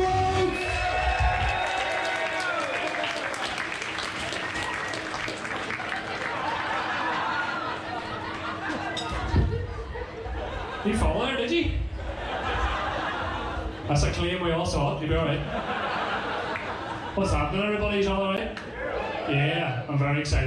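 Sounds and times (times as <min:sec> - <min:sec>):
audience applause: 0:00.0 - 0:09.0
audience cheering: 0:00.0 - 0:09.0, 0:15.6 - 0:19.9
laughter: 0:02.1 - 0:19.4
speech: 0:17.2 - 0:18.4, 0:19.3 - 0:20.4.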